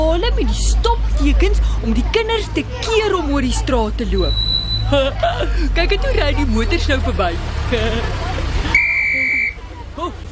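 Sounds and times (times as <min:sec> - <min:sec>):
speech: 0:00.3 - 0:08.2
whistle blown by crossing guard: 0:04.3 - 0:04.9, 0:08.7 - 0:09.6
laughter: 0:04.8 - 0:08.5, 0:09.1 - 0:10.3.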